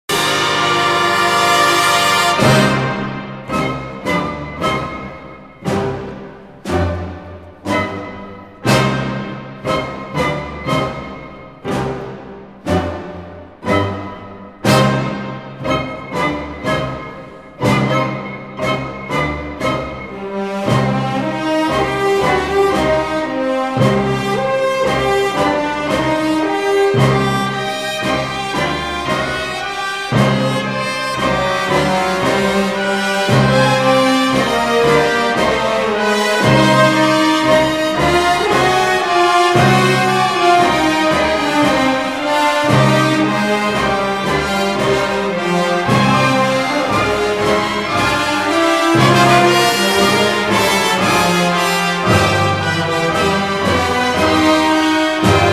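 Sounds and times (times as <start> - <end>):
symphony orchestra brass playing a dramatic adagio: 0.0 - 55.5.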